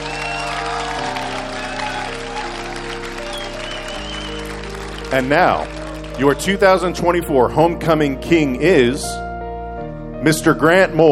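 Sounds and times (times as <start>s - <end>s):
audience applause: 0.0s - 6.6s
speech: 5.1s - 9.2s, 10.2s - 11.1s.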